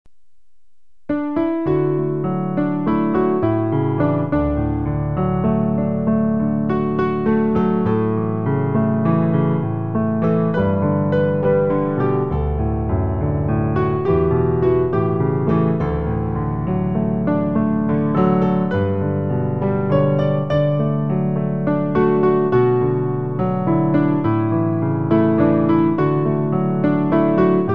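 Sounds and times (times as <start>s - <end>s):
piano: 0.1s - 27.7s.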